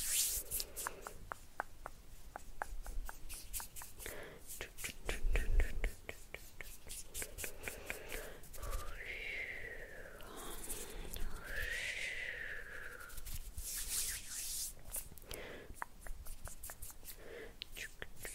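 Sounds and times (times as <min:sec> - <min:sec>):
hands rubbing, brushing and plucking: 0:00.0 - 0:09.1, 0:10.2 - 0:11.9, 0:12.8 - 0:18.3
person whispering softly: 0:03.9 - 0:15.9, 0:16.6 - 0:18.3.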